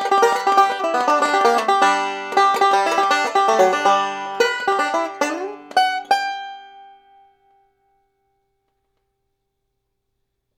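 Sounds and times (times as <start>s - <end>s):
banjo: 0.0s - 7.5s.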